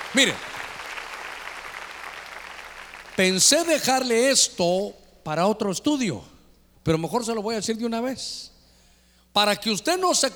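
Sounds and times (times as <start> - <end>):
audience clapping hands: 0.0 - 3.6
speech: 0.1 - 0.5, 3.2 - 8.5, 9.3 - 10.3.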